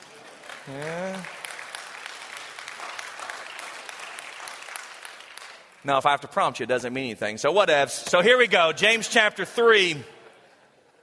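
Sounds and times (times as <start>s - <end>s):
audience applause: 0.0s - 5.8s
speech: 0.7s - 1.4s, 5.8s - 10.2s.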